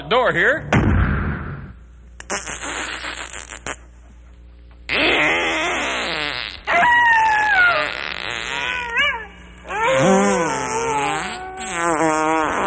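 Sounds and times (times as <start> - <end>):
loud buzzy farts: 1.2 - 3.9, 4.9 - 9.0, 9.8 - 12.6.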